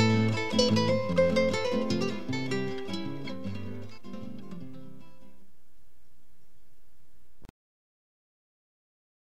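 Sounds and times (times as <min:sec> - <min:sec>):
guitar waltz: 0:00.0 - 0:05.6.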